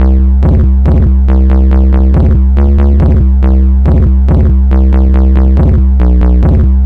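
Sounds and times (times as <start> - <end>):
bassline: 0.0 - 6.8.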